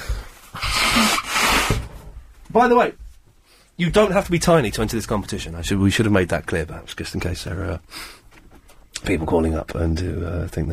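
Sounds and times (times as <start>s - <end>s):
nose blowing: 0.5s - 2.0s
speech: 2.6s - 3.0s, 3.8s - 8.2s, 9.0s - 10.7s.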